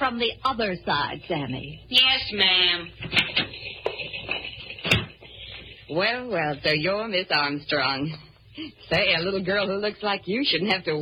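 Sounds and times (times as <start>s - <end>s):
speech: 0.1s - 3.5s, 5.9s - 11.0s
office door being closed: 4.9s - 5.2s.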